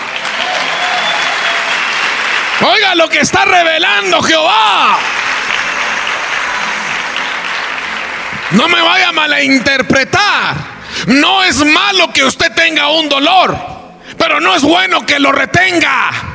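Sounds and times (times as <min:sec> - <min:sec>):
audience applause: 0:00.0 - 0:09.3
speech: 0:02.6 - 0:05.2, 0:08.5 - 0:16.3.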